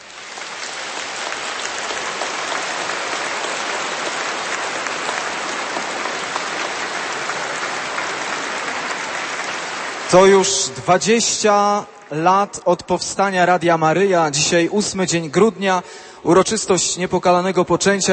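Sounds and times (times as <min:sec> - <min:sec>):
large crowd applauding: 0:00.0 - 0:12.2
speech: 0:10.1 - 0:18.1.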